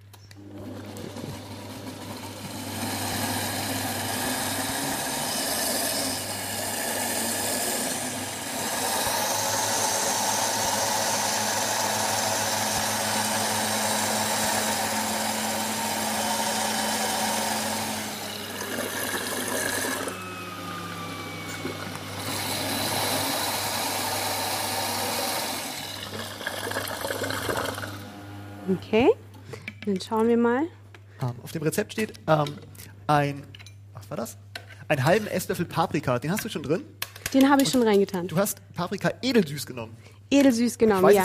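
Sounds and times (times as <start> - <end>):
kitchen blender running: 0.4 - 28.8
speech: 28.9 - 29.2, 29.9 - 33.5, 34.1 - 41.2.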